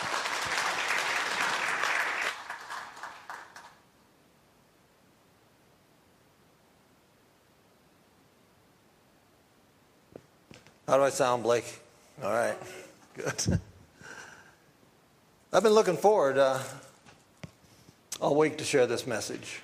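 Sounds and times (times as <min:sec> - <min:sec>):
round of applause: 0:00.0 - 0:03.9
speech: 0:10.9 - 0:13.7, 0:15.6 - 0:16.9, 0:18.2 - 0:19.6.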